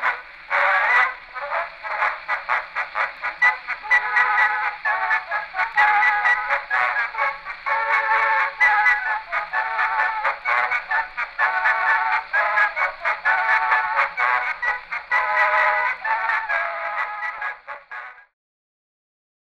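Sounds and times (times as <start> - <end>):
brass band music played on a phonograph: 0.0 - 18.4.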